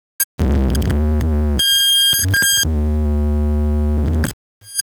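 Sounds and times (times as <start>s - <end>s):
amplifier: 0.4s - 4.3s.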